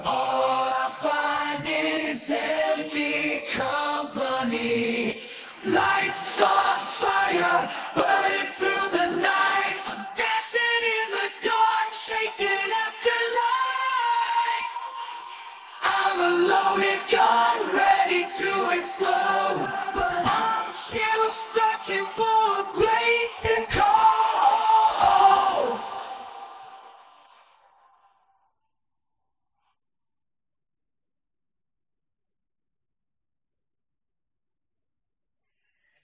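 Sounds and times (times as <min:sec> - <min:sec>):
vocal harmony: 0:00.0 - 0:27.6.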